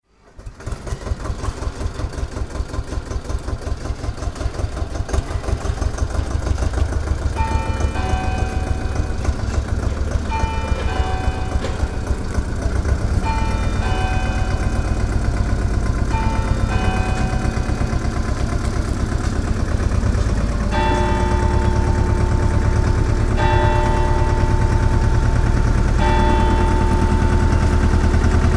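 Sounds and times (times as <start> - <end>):
tractor at a market square: 0.1 - 28.5
church tower bells at a market square: 2.0 - 28.5.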